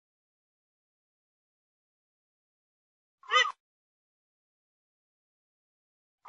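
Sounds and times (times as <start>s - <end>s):
grey-headed swamphen calls: 3.2s - 3.6s.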